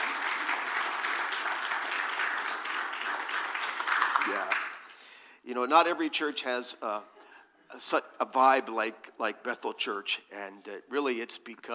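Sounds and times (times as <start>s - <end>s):
audience applause: 0.0s - 4.9s
speech: 4.3s - 4.6s, 5.5s - 11.7s.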